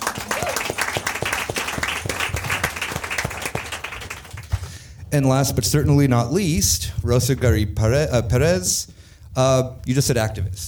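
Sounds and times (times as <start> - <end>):
audience applause: 0.0 - 4.6
speech: 5.1 - 10.6.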